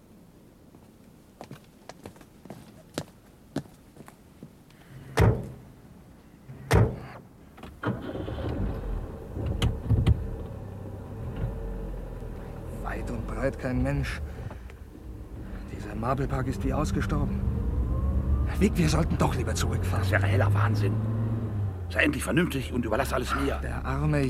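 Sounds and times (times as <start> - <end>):
light footsteps: 0.7 - 5.6
car doors thudding shut: 5.2 - 5.6, 6.7 - 7.2
car engine starting and rumbling: 7.7 - 24.2
speech: 13.4 - 14.4, 16.0 - 17.5, 18.6 - 21.1, 21.9 - 24.2.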